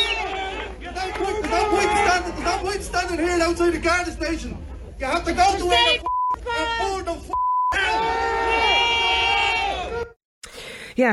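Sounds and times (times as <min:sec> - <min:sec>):
crowd cheering and shouting at an anti-immigration protest outside a Garda station: 0:00.0 - 0:03.0, 0:05.5 - 0:10.2
speech: 0:03.1 - 0:08.7
short high censor beep: 0:06.0 - 0:06.4, 0:07.3 - 0:07.8.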